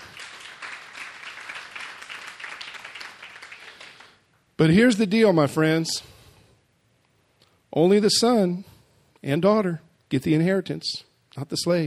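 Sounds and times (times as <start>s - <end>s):
audience clapping: 0.0s - 4.4s
speech: 4.6s - 6.1s, 7.7s - 11.8s.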